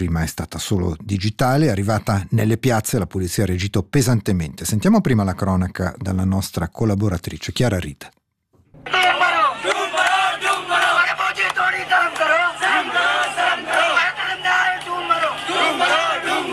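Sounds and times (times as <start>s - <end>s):
speech: 0.0s - 8.2s
crowd of protesters shouting chants: 8.8s - 16.5s.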